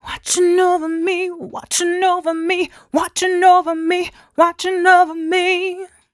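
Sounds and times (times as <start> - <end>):
female vocals: 0.0 - 6.1.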